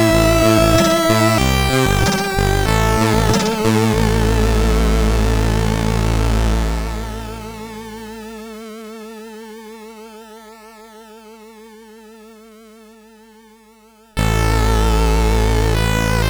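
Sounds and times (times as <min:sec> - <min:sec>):
SID chip music on a CSG8580R5 chip: 0:00.0 - 0:08.2, 0:14.2 - 0:16.2.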